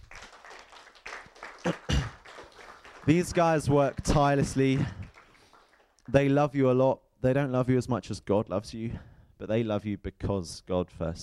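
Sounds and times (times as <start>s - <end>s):
church congregation applauding its leaders: 0.0s - 6.4s
speech: 3.1s - 5.0s, 6.1s - 11.2s.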